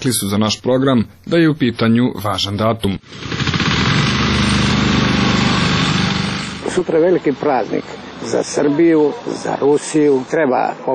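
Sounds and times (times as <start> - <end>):
speech: 0.0 - 4.5, 6.8 - 10.9
lawn mower cutting grass: 3.1 - 10.2.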